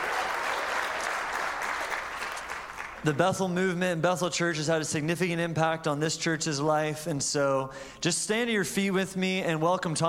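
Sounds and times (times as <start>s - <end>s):
church congregation applauding for Bethel Church of Redding, California: 0.0s - 3.2s
speech: 3.0s - 10.0s.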